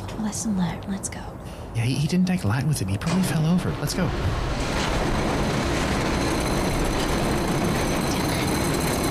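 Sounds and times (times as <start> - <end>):
speech: 0.2 - 4.6
mechanical rustling and shuddering from the center of the house: 4.2 - 9.0.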